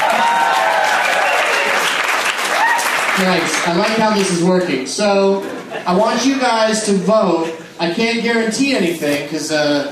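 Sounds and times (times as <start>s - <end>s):
audience applause: 0.0s - 4.4s
speech: 3.2s - 9.9s.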